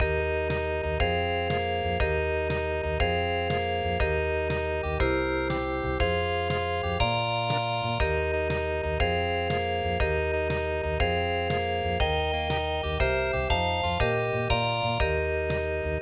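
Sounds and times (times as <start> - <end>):
Paris musette music: 0.0 - 16.0.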